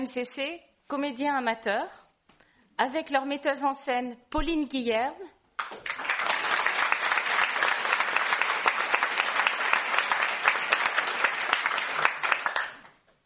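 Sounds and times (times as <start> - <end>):
speech: 0.0 - 2.0, 2.8 - 5.9
audience applauding amateur theatre actors: 5.6 - 13.0.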